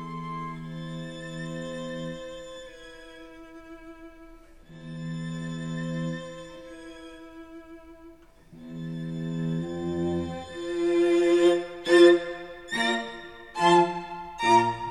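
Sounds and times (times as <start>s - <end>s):
string quartet of two violins, viola and cello playing an allegro in B-flat major: 0.0s - 14.8s.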